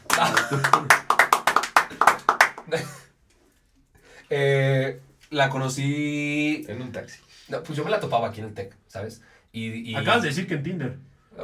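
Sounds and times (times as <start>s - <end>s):
applause: 0.0s - 3.0s
laughter: 0.0s - 3.0s
speech: 0.2s - 1.0s, 4.3s - 11.4s.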